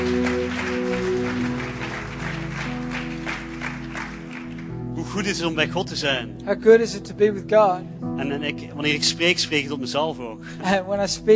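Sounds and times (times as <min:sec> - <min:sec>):
audience applause: 0:00.0 - 0:05.3
speech: 0:05.2 - 0:11.3.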